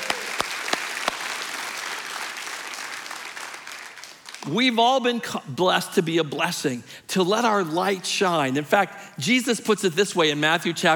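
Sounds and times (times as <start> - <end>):
audience applauding: 0.0 - 4.5
speech: 4.5 - 10.9.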